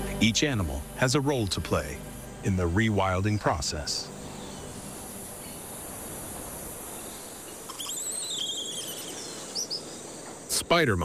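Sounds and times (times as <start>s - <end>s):
steady high insect drone in a forest: 0.0s - 11.0s
speech: 0.2s - 4.1s, 10.7s - 11.0s
whistling bird calls: 6.9s - 10.6s.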